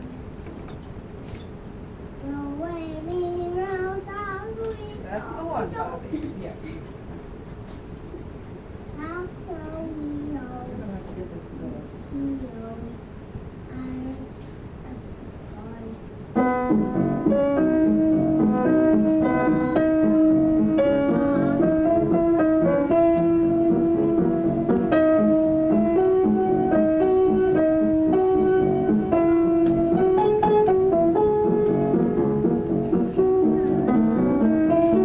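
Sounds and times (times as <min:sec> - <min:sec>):
practice minuet duet: 0:02.2 - 0:06.3, 0:09.0 - 0:13.1, 0:13.7 - 0:35.0.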